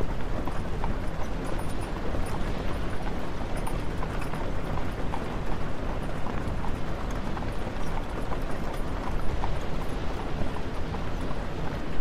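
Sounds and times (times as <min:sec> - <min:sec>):
horse hooves clopping: 0:00.0 - 0:11.9.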